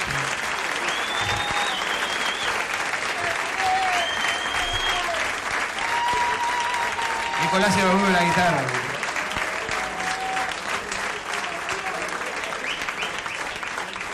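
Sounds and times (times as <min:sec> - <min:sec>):
crowd applause after a guitarist's performance: 0:00.0 - 0:14.1
whistles: 0:00.8 - 0:02.7, 0:03.8 - 0:05.2, 0:12.6 - 0:13.7
speech: 0:07.5 - 0:08.8.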